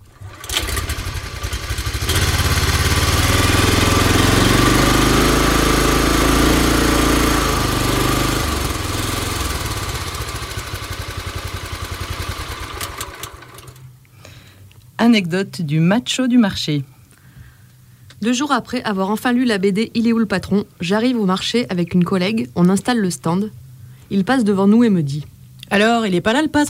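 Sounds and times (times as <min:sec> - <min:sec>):
motor engine started and running: 0:00.0 - 0:14.0
speech: 0:15.1 - 0:16.9, 0:18.2 - 0:26.6.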